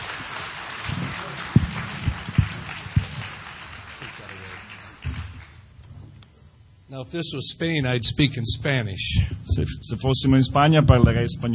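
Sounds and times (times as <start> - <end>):
audience applause: 0.0 - 5.7
speech: 6.9 - 11.5.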